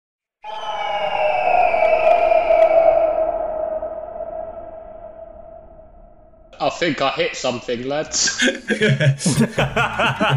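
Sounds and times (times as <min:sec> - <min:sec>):
distant extremely loud screeching like a giant eagle: 0:00.4 - 0:06.6
speech: 0:06.8 - 0:10.3
laughter: 0:08.2 - 0:10.3.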